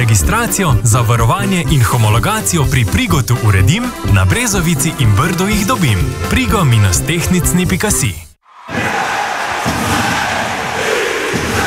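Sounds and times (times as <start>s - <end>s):
speech: 0.0s - 9.0s
ice hockey arena crowd cheering: 8.4s - 11.6s.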